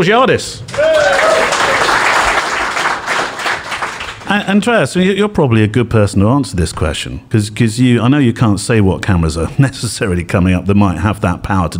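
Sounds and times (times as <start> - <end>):
speech: 0.0 - 2.0, 4.3 - 11.7
live audience applause: 0.7 - 4.4.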